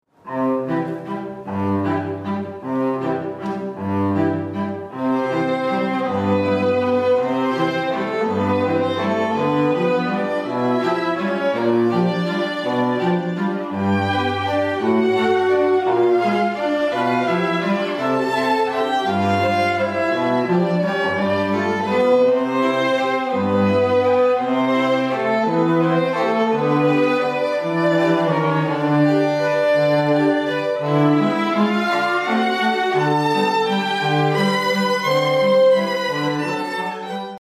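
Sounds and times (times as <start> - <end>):
strings playing a waltz: 0.2 - 37.3.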